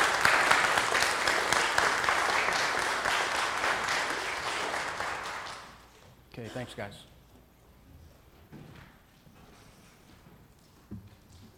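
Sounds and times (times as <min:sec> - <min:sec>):
crowd applauding: 0:00.0 - 0:05.9
speech: 0:06.5 - 0:07.1.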